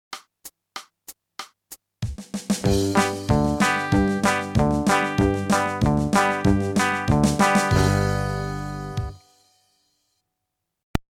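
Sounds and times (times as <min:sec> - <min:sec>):
country music: 0:02.6 - 0:09.2.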